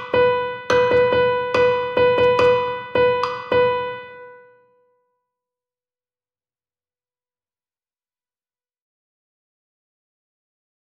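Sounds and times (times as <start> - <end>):
rhythm exercise: 0.0 - 4.2.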